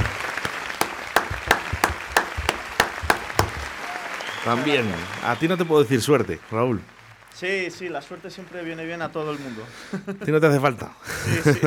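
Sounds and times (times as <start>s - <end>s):
applause: 0.0s - 9.3s
speech: 4.4s - 11.6s
laughter: 9.3s - 11.6s.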